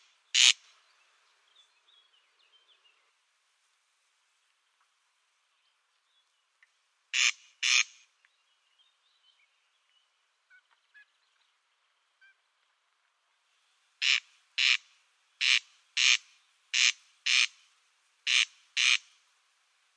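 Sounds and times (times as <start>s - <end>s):
Corn crake display call, harsh grating crex-crex rasps: 0.4s - 0.6s, 7.2s - 8.0s, 15.4s - 17.6s, 18.3s - 19.1s.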